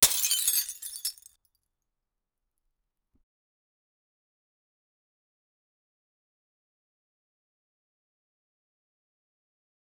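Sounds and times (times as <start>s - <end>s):
glass breaking: 0.0s - 1.3s.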